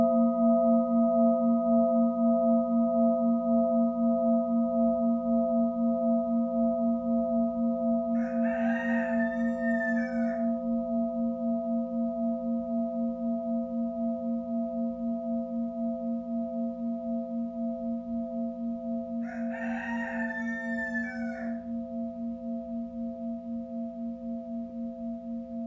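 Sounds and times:
singing bowl humming: 0.0 - 8.4, 9.4 - 25.6
rooster crowing: 8.2 - 10.6, 19.2 - 21.7.

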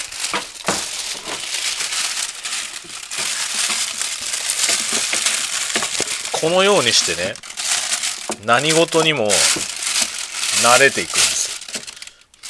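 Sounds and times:
plastic garbage bag being crinkled and crushed: 0.0 - 12.4
speech: 6.4 - 7.5, 8.4 - 9.7, 10.6 - 11.2.

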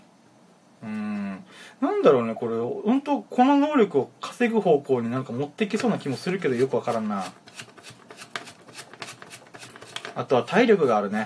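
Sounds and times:
speech: 2.0 - 7.5, 10.2 - 11.2
cigarette paper rustling while rolling shag tobacco: 5.8 - 11.0
small dry scratches of shag tobacco: 5.8 - 11.0.

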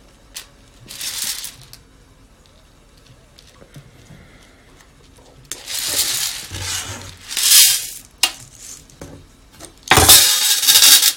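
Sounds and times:
faint low hum: 0.0 - 10.3
green coffee beans rattling while roasted: 0.3 - 1.8, 5.5 - 8.9, 9.9 - 11.1.

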